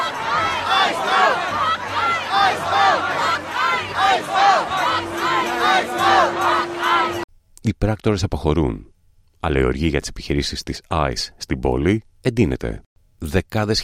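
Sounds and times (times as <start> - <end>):
crowd shouting at federal agents: 0.0 - 7.2
speech: 7.7 - 13.8.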